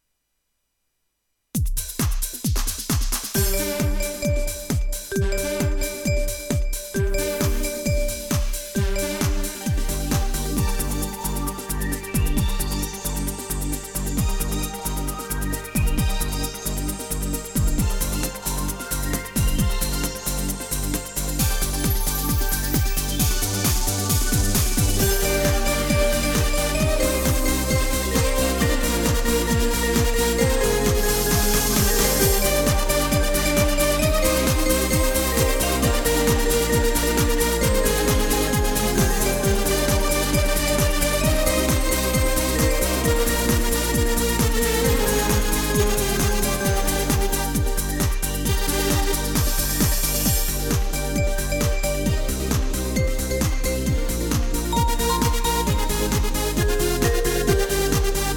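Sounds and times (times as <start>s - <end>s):
GW-8 techno music: 1.8s - 58.3s.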